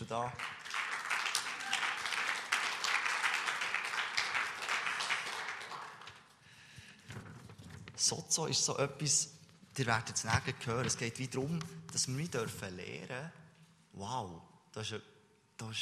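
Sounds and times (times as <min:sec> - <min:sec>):
audience applause: 0:00.0 - 0:06.3
speech: 0:00.1 - 0:00.6, 0:08.0 - 0:13.4, 0:14.0 - 0:15.8.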